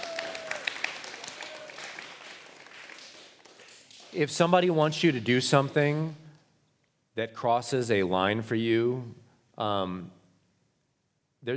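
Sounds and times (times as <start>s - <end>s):
audience clapping: 0.0s - 6.2s
speech: 4.1s - 6.2s, 7.2s - 10.2s.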